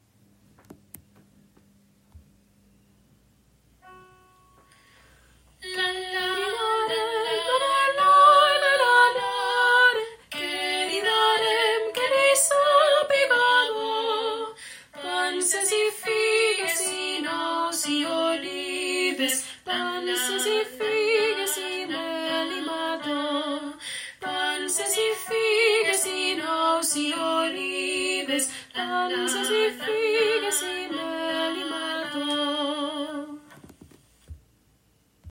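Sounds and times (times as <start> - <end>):
soprano singing: 5.6 - 33.5.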